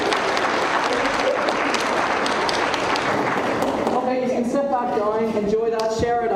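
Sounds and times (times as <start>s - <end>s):
audience applause: 0.0s - 4.3s
speech: 5.2s - 6.2s.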